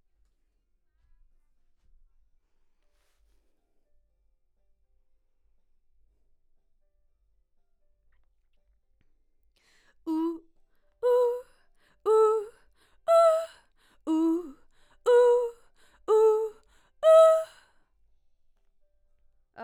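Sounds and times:
background vocals: 10.1s - 10.4s, 11.0s - 11.4s, 12.0s - 17.6s.

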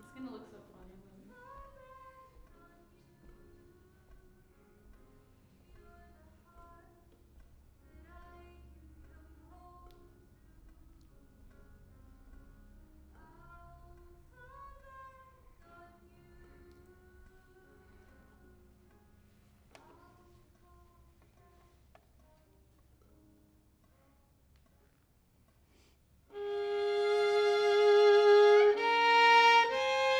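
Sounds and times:
violin: 26.3s - 30.1s.

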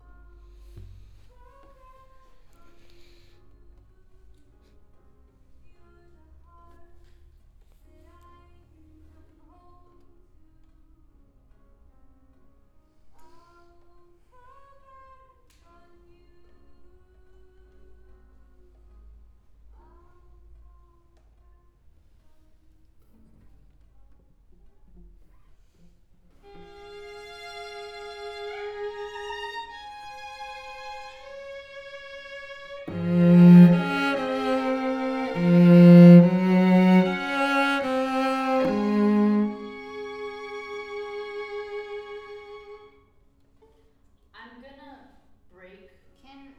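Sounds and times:
cello: 24.5s - 43.0s.

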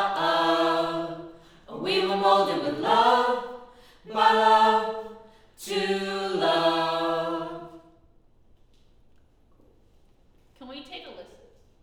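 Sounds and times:
choir singing: 0.0s - 8.0s.

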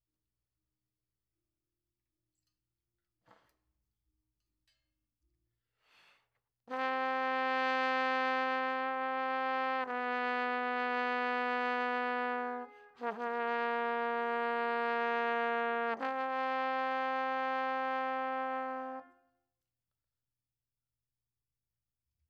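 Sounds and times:
trombone: 6.7s - 19.1s.

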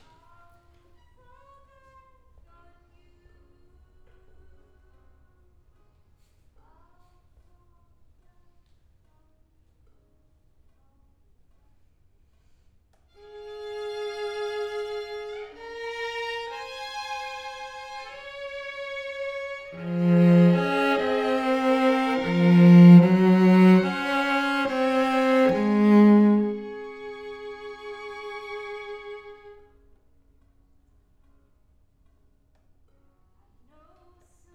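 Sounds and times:
cello: 13.2s - 29.6s.

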